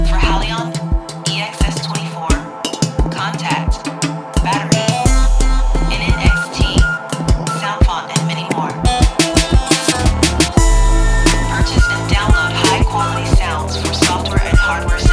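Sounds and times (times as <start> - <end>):
ethnic music: 0.0 - 15.1.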